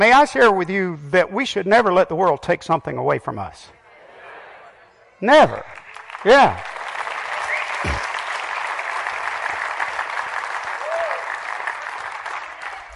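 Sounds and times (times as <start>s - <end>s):
speech: 0.0s - 3.8s, 5.2s - 6.8s
audience clapping: 5.5s - 12.9s.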